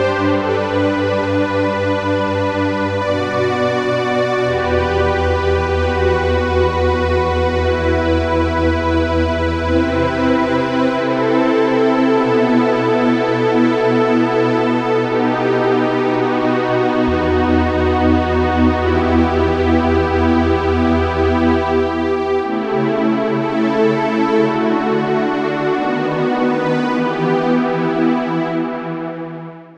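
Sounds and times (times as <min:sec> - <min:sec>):
vintage chorus strings: 0:00.0 - 0:29.2.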